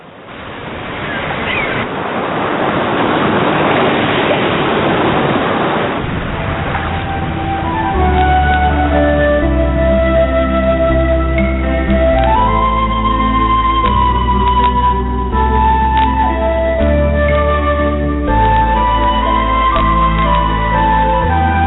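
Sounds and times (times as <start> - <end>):
wind: 0.0 - 21.6
sea waves lapping against a rock wall: 0.3 - 8.2
low bass: 6.0 - 21.6
sustained musical tones: 6.1 - 21.6.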